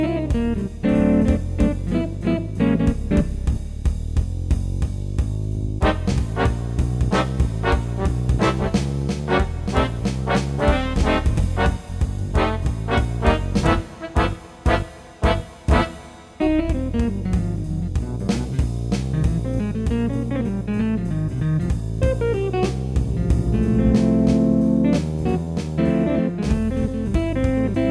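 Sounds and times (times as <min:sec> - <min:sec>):
jazz band with guitar: 0:00.0 - 0:27.9.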